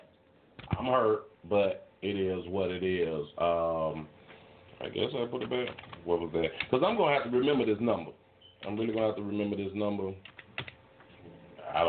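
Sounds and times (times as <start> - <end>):
speech: 0.8 - 4.2, 4.8 - 10.7
typing on a keyboard: 5.4 - 6.0, 10.2 - 10.8.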